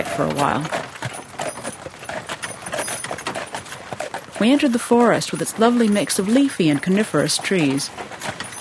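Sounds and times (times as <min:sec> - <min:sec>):
harness and wheels rattling: 0:00.0 - 0:08.5
horses' hooves clip-clopping pulling a wagon: 0:00.0 - 0:08.5
speech: 0:00.1 - 0:00.8, 0:04.4 - 0:08.1.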